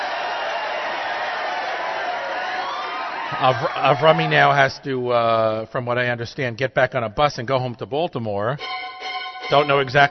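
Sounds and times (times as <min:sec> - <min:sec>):
crowd applauding: 0:00.0 - 0:04.8
crowd cheering: 0:00.0 - 0:05.4
speech: 0:03.3 - 0:08.8, 0:09.5 - 0:10.0.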